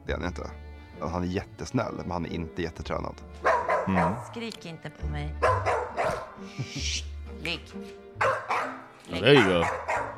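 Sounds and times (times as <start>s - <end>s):
speech: 0.1s - 8.5s, 9.1s - 9.9s
dog barking: 3.4s - 4.3s, 5.4s - 6.4s, 8.2s - 10.1s.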